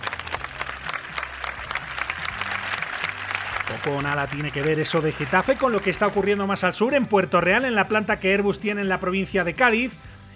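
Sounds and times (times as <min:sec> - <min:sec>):
crowd applause: 0:00.0 - 0:06.6
speech: 0:03.8 - 0:10.1.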